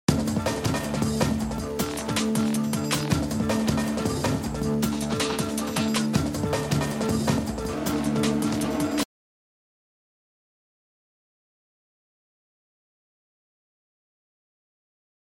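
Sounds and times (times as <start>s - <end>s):
drum loop: 0.1s - 9.0s.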